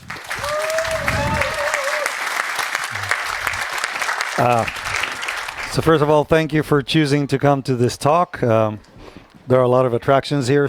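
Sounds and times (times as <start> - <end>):
audience applause: 0.0 - 6.0
speech: 4.4 - 4.8, 5.7 - 8.9, 9.5 - 10.6.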